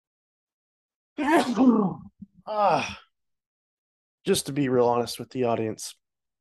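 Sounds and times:
voiced sneeze: 0:01.2 - 0:02.1
speech: 0:01.2 - 0:03.0, 0:04.2 - 0:06.0.

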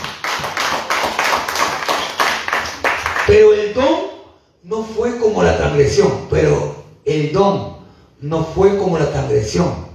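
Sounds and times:
audience clapping: 0:00.0 - 0:03.6
speech: 0:03.3 - 0:04.0, 0:04.9 - 0:09.8.

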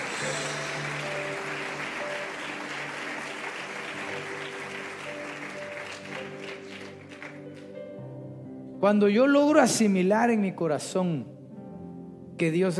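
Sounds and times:
loud hand clapping: 0:00.0 - 0:07.8
speech: 0:08.8 - 0:11.4, 0:12.4 - 0:12.7.

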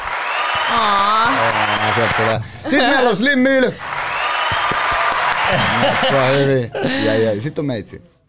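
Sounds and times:
audience applause: 0:00.0 - 0:06.4
speech: 0:00.7 - 0:03.9, 0:05.5 - 0:08.1
laughter: 0:04.5 - 0:07.3.

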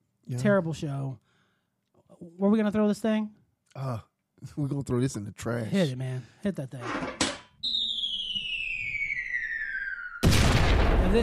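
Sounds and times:
speech: 0:00.3 - 0:01.2, 0:02.2 - 0:07.8
falling bomb whistle sound effect: 0:07.6 - 0:10.7
explosion blast sound effect: 0:08.3 - 0:11.2.

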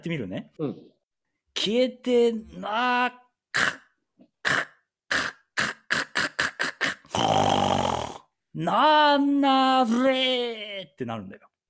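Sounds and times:
speech: 0:00.0 - 0:01.0, 0:01.6 - 0:03.8, 0:08.6 - 0:11.5
voice imitating overly forceful breath kah sound: 0:03.5 - 0:08.3.

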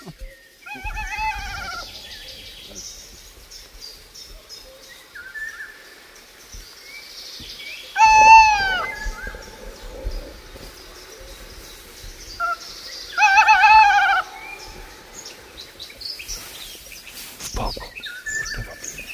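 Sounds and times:
owl giving harsh nasal calls: 0:00.0 - 0:03.0, 0:07.9 - 0:16.7.

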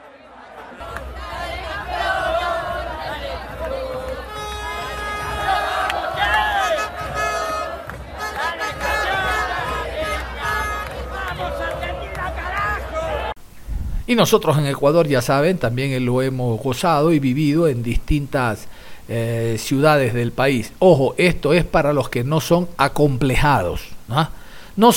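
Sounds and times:
celebrating crowd of football fans shouting and chanting: 0:00.0 - 0:13.4
speech: 0:14.1 - 0:24.9.

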